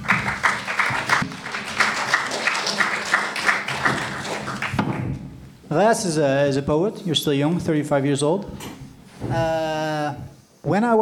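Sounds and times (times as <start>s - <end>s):
audience applause: 0.0s - 5.1s
speech: 5.7s - 8.7s, 9.3s - 11.0s.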